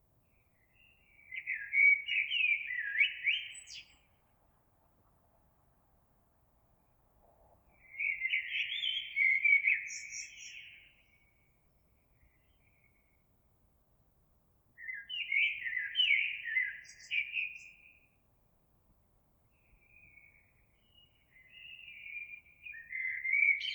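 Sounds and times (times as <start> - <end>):
Eurasian blackbird song: 0.4 - 4.1, 7.8 - 11.3, 14.8 - 18.1, 19.6 - 23.7.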